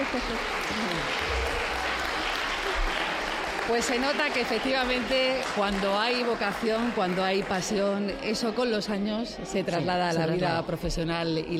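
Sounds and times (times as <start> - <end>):
applause: 0.0 - 8.6
speech: 0.1 - 1.5, 3.7 - 11.5.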